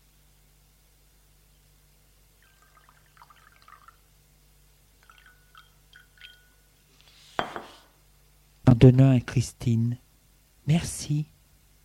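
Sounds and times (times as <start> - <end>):
drink poured into two glasses: 2.4 - 4.1, 5.0 - 6.7
speech: 8.7 - 10.0, 10.7 - 11.3.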